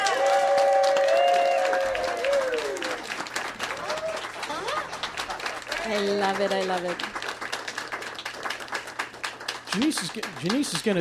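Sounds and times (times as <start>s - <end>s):
whoops and cheers: 0.0s - 3.1s, 3.7s - 4.3s
audience applause: 0.0s - 10.9s
speech: 5.9s - 7.2s, 9.8s - 10.9s.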